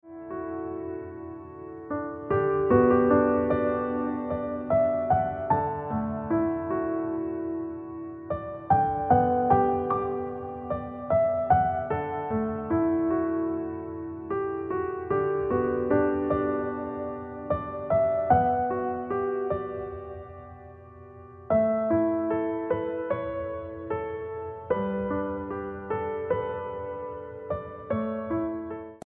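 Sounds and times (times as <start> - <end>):
piano ringtone music: 0.1 - 29.0.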